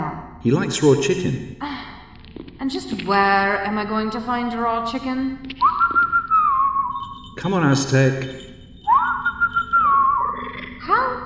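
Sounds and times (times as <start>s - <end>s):
speech: 0.4s - 1.8s, 2.6s - 5.6s, 7.4s - 8.5s
long whistle to call a cat: 5.6s - 7.8s, 8.9s - 10.6s.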